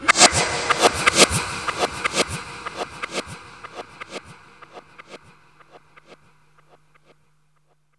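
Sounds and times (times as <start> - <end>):
reverse echo effect: 0.0 - 5.8.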